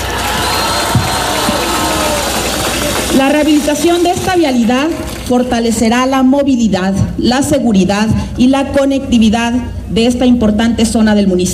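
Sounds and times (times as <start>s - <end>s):
crowd applause and cheering: 0.0s - 5.3s
speech: 3.2s - 11.5s.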